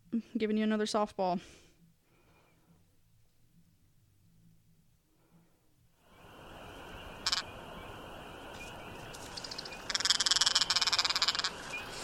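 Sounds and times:
speech: 0.4 - 1.6
woodcock call: 7.0 - 7.6, 8.5 - 12.0.

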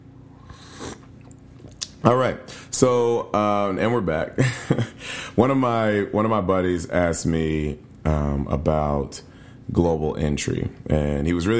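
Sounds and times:
sipping tea: 0.4 - 2.0
speech: 2.0 - 11.5.

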